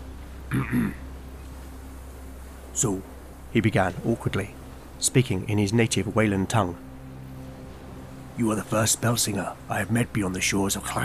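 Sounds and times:
man clearing throat: 0.5s - 1.0s
speech: 0.5s - 1.0s, 2.8s - 6.9s, 8.4s - 11.0s.

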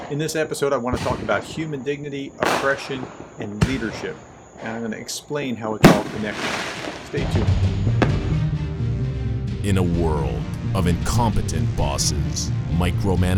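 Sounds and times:
speech: 0.1s - 8.0s, 9.6s - 13.3s
Fourth of July fireworks bangs and pops in a neighborhood: 0.9s - 4.8s, 5.8s - 8.3s.

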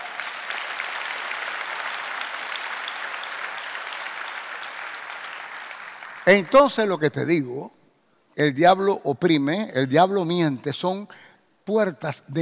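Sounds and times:
audience applause: 0.0s - 6.6s
speech: 6.3s - 7.8s, 8.4s - 12.4s.

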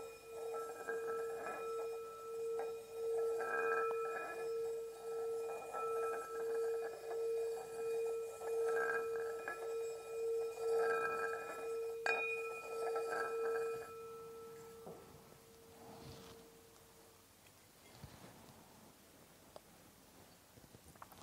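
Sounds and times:
meditation bell ringing: 0.0s - 16.8s.

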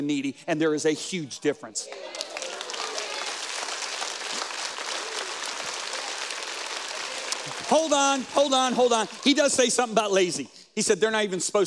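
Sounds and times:
speech: 0.0s - 2.3s, 7.7s - 11.6s
audience clapping: 1.8s - 9.9s.

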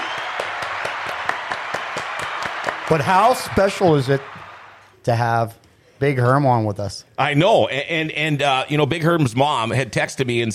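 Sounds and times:
studio applause: 0.0s - 4.9s
speech: 2.9s - 4.4s, 5.0s - 10.5s.

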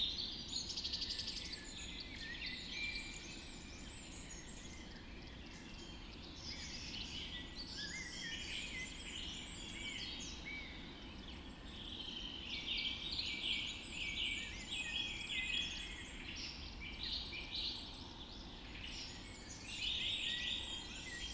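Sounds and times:
birds in a dawn chorus: 0.0s - 21.3s.

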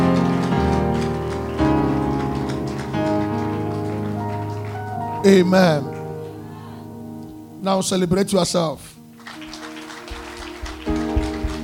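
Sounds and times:
audience clapping hands: 0.0s - 6.4s, 9.1s - 11.6s
speech: 5.2s - 5.9s, 7.6s - 8.9s.

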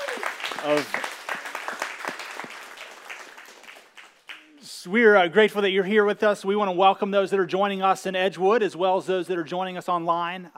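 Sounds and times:
church congregation applauding: 0.0s - 4.6s
speech: 0.6s - 1.0s, 4.8s - 10.5s.

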